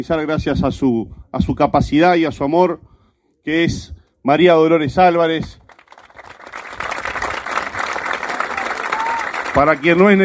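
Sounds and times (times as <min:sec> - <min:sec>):
speech: 0:00.0 - 0:05.6, 0:09.6 - 0:10.2
audience applause: 0:05.7 - 0:10.2.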